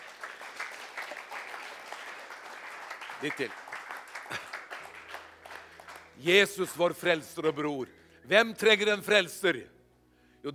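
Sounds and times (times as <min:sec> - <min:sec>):
audience applause in a church: 0:00.0 - 0:06.2
speech: 0:03.2 - 0:03.6, 0:04.3 - 0:04.5, 0:06.2 - 0:09.8.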